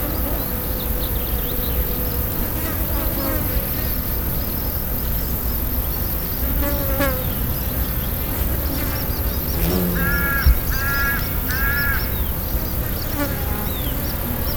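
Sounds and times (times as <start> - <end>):
cicadas: 0.0 - 14.5
insects buzzing: 0.0 - 14.5
yellow-legged gull calling: 10.0 - 12.2.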